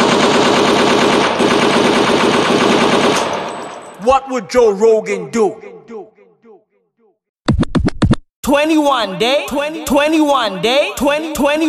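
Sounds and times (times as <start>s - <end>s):
automatic gunfire from a video game: 0.0s - 3.6s
speech: 4.1s - 6.0s, 8.4s - 11.6s.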